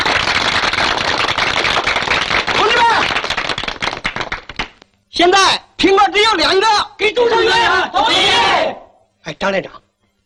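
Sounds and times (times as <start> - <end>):
group applause: 0.0 - 4.8
speech: 5.2 - 9.8.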